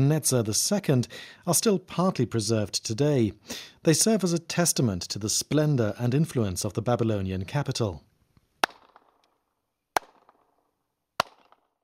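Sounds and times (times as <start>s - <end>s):
speech: 0.0s - 8.1s
hand clap echoing between high walls: 11.2s - 11.7s.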